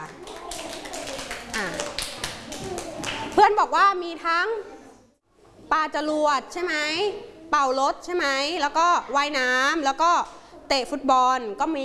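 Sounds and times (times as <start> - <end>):
classroom clapping: 0.0 - 3.4
speech: 3.4 - 4.8, 5.7 - 11.8.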